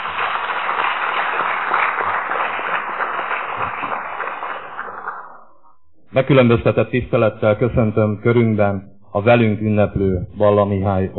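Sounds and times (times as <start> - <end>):
audience applause: 0.0 - 5.5
speech: 6.1 - 11.1.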